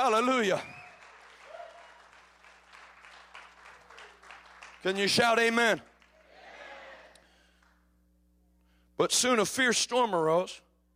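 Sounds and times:
speech: 0.0 - 0.8, 4.8 - 5.9, 9.0 - 10.6
crowd clapping: 0.0 - 7.8
faint whoop: 1.4 - 2.0.

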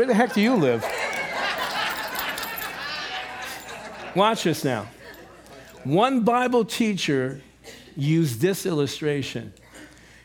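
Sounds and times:
speech: 0.0 - 1.1, 4.2 - 5.0, 5.8 - 9.6
laughter: 0.0 - 5.8
keys jangling: 0.8 - 3.8.

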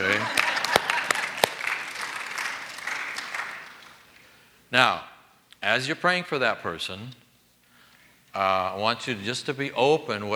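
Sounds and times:
laughter: 0.0 - 4.3
small group applauding: 0.0 - 4.6
speech: 4.8 - 7.2, 8.4 - 10.3.

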